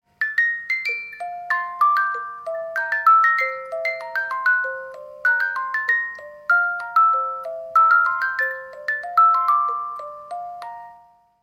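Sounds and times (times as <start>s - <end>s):
music box melody: 0.1s - 11.4s.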